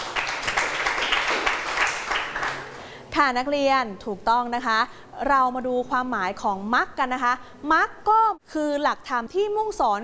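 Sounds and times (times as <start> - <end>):
students clapping for themselves: 0.0 - 2.8
speech: 3.2 - 10.0.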